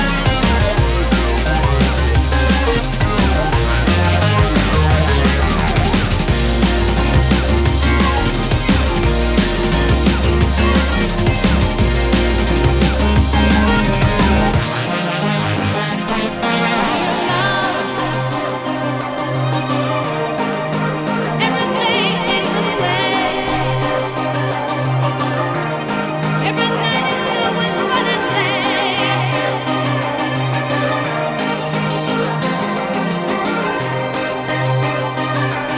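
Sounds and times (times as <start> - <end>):
rock music with bass: 0.0 - 35.7.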